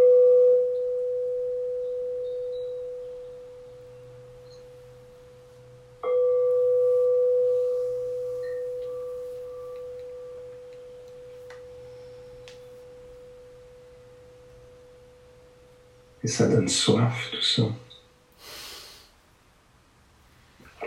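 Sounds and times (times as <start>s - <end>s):
meditation bell ringing: 0.0s - 16.2s
speech: 16.3s - 17.8s.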